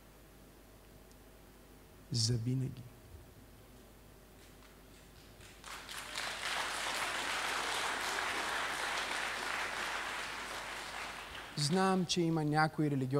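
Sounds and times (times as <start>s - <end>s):
speech: 2.1s - 2.9s, 11.7s - 13.1s
crowd applauding: 5.4s - 12.0s.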